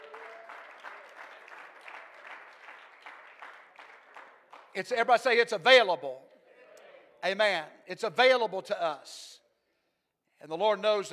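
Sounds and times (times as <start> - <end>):
people clapping their hands: 0.0 - 5.2
speech: 4.8 - 6.3, 7.2 - 9.3, 10.4 - 11.1.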